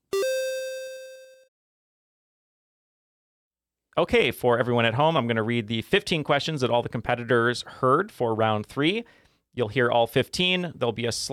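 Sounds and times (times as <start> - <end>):
beep: 0.0 - 1.5
speech: 4.0 - 11.3.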